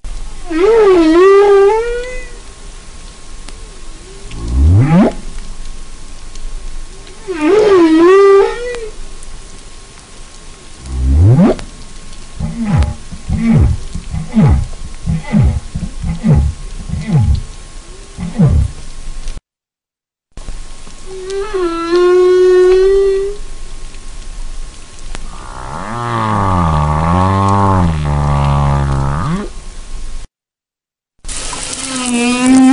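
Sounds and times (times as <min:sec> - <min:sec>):
whale song recorded by hydrophone: 0:00.4 - 0:02.4, 0:03.6 - 0:05.3, 0:06.9 - 0:09.0, 0:10.8 - 0:11.8, 0:12.4 - 0:18.9, 0:21.0 - 0:23.5, 0:25.3 - 0:29.6, 0:31.8 - 0:32.7.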